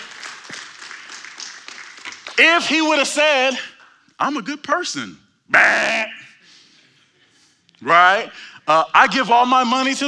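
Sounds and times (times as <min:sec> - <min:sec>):
audience applause: 0:00.0 - 0:02.4
speech: 0:02.4 - 0:06.2, 0:07.8 - 0:10.0.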